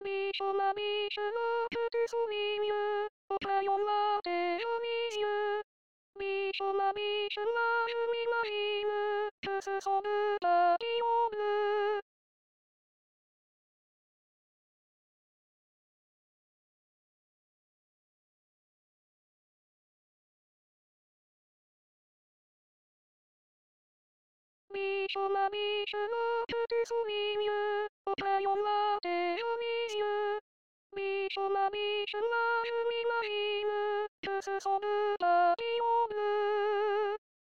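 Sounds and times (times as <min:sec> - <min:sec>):
soprano singing: 0:00.0 - 0:05.6, 0:06.2 - 0:12.0, 0:24.7 - 0:30.4, 0:31.0 - 0:37.2.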